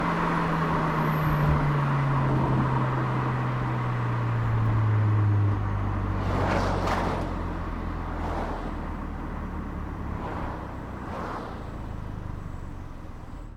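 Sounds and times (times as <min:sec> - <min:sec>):
Audi Q2 engine revving up and down while driving, onboard at right exhaust: 0:00.0 - 0:12.7.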